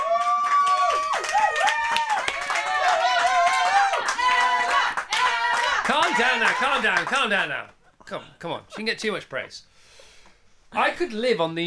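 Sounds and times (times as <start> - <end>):
control room round of applause: 0.0 - 7.4
speech: 5.9 - 9.9, 10.7 - 11.6.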